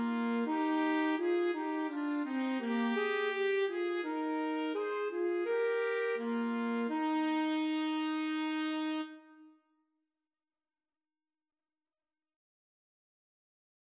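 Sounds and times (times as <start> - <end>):
saxophone playing in a duet with trumpet: 0.0 - 9.6
trumpet playing in a duet with saxophone: 0.0 - 9.6.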